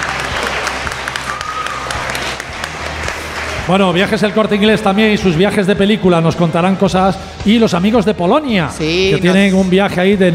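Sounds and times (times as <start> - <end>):
audience applause: 0.0 - 4.7
speech: 3.7 - 10.3.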